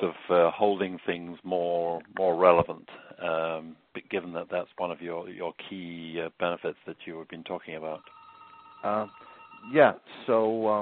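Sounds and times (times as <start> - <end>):
speech: 0.0 - 8.2, 8.8 - 10.8
mobile phone electronic ringtone ringing in a room: 8.0 - 9.8.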